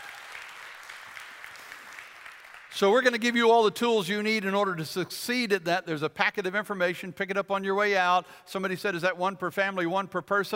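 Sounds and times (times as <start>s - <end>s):
crowd clapping: 0.0s - 3.4s
speech: 2.8s - 10.5s.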